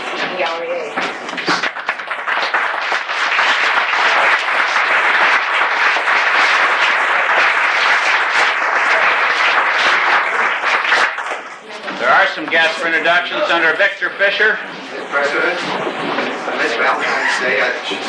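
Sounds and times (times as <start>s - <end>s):
applause in the Alaska House: 0.0s - 12.7s
speech: 0.3s - 1.5s, 12.5s - 15.9s, 16.5s - 18.0s.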